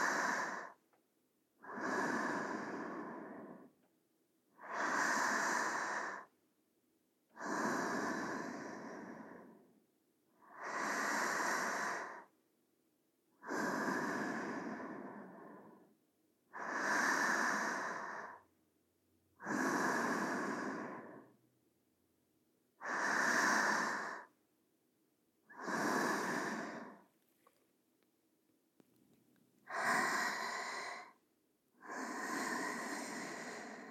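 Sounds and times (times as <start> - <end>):
sleeping breathing: 0.0 - 0.8, 1.6 - 3.8, 4.6 - 6.3, 7.3 - 9.8, 10.4 - 12.3, 13.4 - 15.9, 16.5 - 18.5, 19.4 - 21.4, 22.8 - 24.4, 25.5 - 27.1, 29.6 - 31.2, 31.8 - 33.8.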